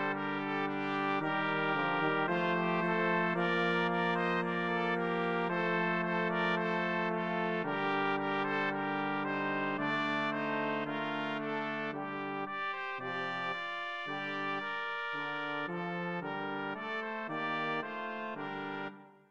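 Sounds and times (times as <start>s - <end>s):
brass quartet playing: 0.0s - 19.0s.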